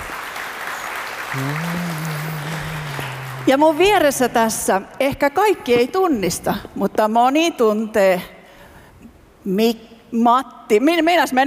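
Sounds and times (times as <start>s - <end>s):
audience applause: 0.0s - 3.8s
speech: 1.3s - 2.6s, 3.4s - 8.3s, 9.4s - 11.4s
sustained low voice-like tone: 1.3s - 4.0s.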